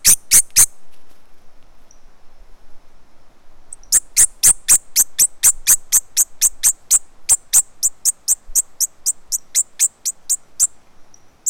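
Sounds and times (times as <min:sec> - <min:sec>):
bird giving stress calls while held in hand: 0:03.7 - 0:11.4.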